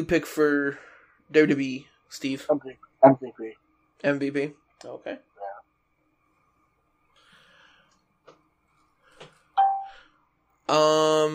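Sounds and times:
speech: 0:00.0 - 0:05.3, 0:10.7 - 0:11.3
mobile phone going off with electronic chimes and beeps: 0:09.6 - 0:10.0.

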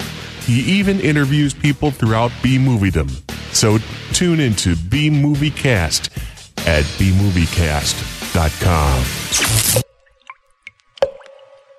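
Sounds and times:
speech: 0:00.5 - 0:09.8
blood dripping: 0:09.3 - 0:11.7.

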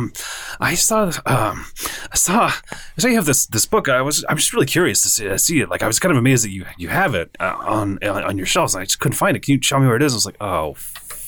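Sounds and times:
speech: 0:00.0 - 0:11.0
man imitating heavy breathing: 0:01.2 - 0:03.0.

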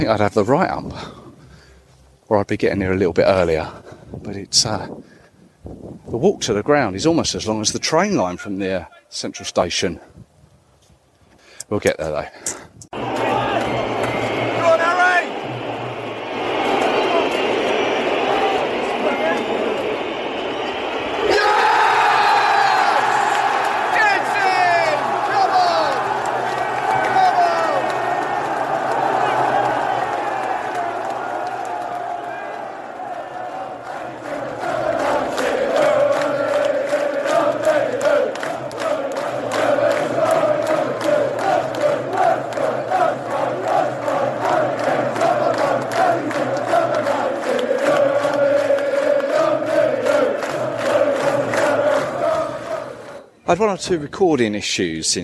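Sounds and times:
speech: 0:00.0 - 0:01.2, 0:02.3 - 0:10.3, 0:11.7 - 0:12.9, 0:53.6 - 0:55.2
football stadium crowd cheering: 0:12.9 - 0:54.0.

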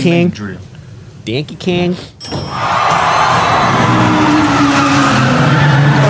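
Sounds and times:
speech: 0:00.0 - 0:02.8, 0:03.8 - 0:05.0
car drifting tires squealing: 0:02.6 - 0:06.0
roaring car engine: 0:03.1 - 0:06.0.

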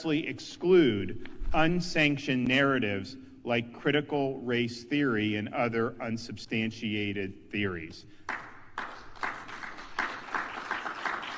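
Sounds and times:
speech: 0:00.0 - 0:08.9
sparse hesitant audience clapping: 0:08.2 - 0:11.3.

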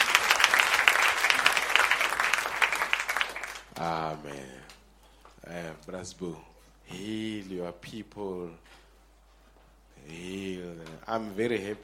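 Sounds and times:
crowd clapping: 0:00.0 - 0:04.0
speech: 0:03.8 - 0:04.8, 0:05.4 - 0:08.8, 0:10.0 - 0:11.8.

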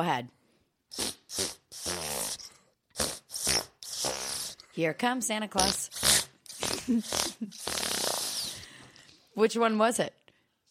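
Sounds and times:
speech: 0:00.0 - 0:01.2, 0:04.8 - 0:05.9, 0:06.9 - 0:07.7, 0:09.4 - 0:10.2
mouth farts playing a Christmas carol: 0:00.9 - 0:04.6, 0:05.6 - 0:08.6.

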